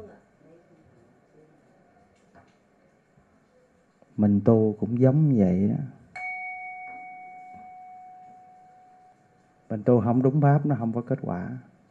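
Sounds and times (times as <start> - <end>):
speech: 4.2 - 6.0, 9.7 - 11.7
bell struck with a mallet ringing: 6.2 - 10.6.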